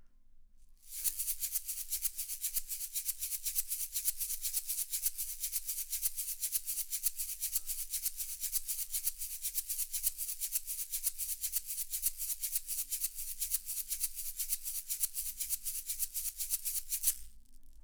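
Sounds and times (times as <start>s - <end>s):
shaker: 0.8s - 17.8s.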